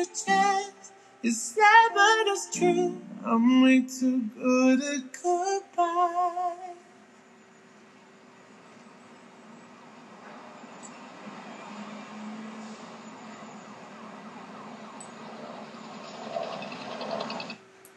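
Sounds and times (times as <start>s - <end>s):
speech: 0.0s - 0.5s, 1.2s - 6.8s
car driving away: 9.9s - 17.6s.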